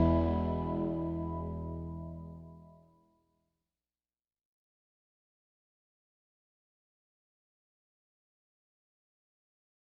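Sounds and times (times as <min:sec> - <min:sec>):
blues music: 0:00.0 - 0:02.5.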